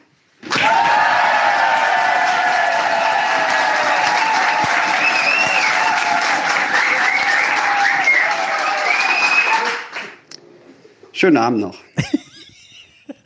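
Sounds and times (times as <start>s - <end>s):
large live crowd applauding: 0.5s - 10.2s
speech: 11.2s - 12.2s
laughter: 11.9s - 13.2s.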